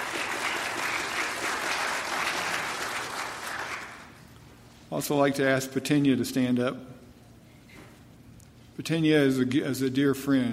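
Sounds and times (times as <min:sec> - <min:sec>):
crowd applause: 0:00.0 - 0:04.2
speech: 0:04.9 - 0:07.0, 0:08.8 - 0:10.5.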